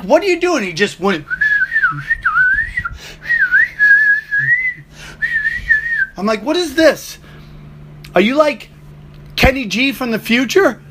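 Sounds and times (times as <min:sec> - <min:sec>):
speech: 0:00.0 - 0:02.2, 0:06.2 - 0:07.2, 0:08.2 - 0:08.7, 0:09.4 - 0:10.8
person whistling in imitation of frantic flute playing: 0:01.3 - 0:06.2.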